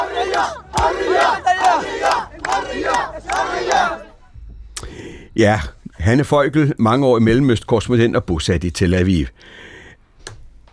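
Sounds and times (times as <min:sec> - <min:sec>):
large crowd chanting freedom in unison: 0:00.0 - 0:04.3
speech: 0:00.4 - 0:04.0, 0:05.4 - 0:09.7.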